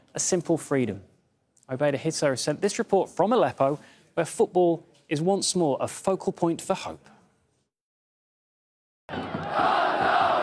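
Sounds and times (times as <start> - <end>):
speech: 0.2 - 1.1, 1.7 - 7.2
football fans cheering in a stadium: 9.1 - 10.4.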